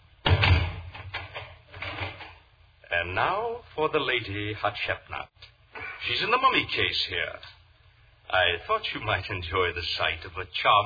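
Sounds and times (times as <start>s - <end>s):
door shut: 0.2s - 2.4s
speech: 3.0s - 7.6s, 8.3s - 10.8s.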